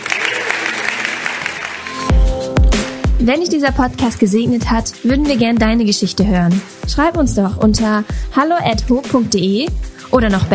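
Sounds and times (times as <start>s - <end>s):
crowd clapping and cheering: 0.0s - 3.2s
speech: 3.2s - 10.5s.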